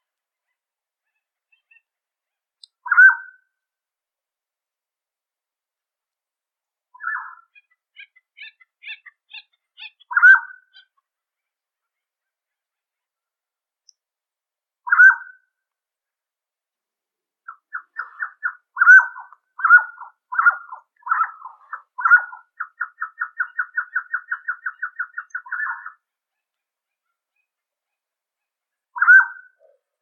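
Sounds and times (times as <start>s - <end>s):
mountain quail calling: 7.0s - 11.0s, 17.5s - 26.0s.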